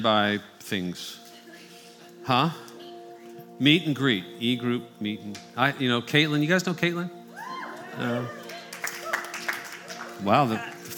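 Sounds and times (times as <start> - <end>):
speech: 0.0 - 1.2, 2.3 - 2.7, 3.6 - 7.2, 8.0 - 8.4, 10.2 - 10.7
brief scattered applause: 8.2 - 10.9.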